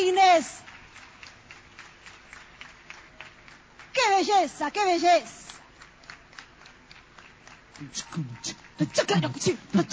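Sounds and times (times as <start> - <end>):
audience applause: 0.6 - 3.9, 5.6 - 9.9
speech: 4.2 - 5.4, 7.8 - 9.9.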